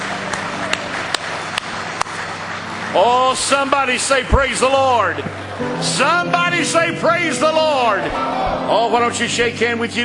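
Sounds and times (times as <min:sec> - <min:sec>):
audience clapping hands: 0:00.0 - 0:06.4
speech: 0:02.9 - 0:10.0.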